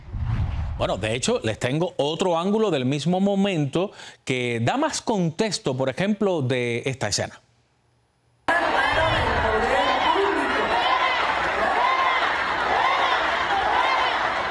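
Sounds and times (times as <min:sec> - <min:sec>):
speech: 0:00.8 - 0:07.4
crowd shouting at protester with megaphone: 0:08.5 - 0:14.4.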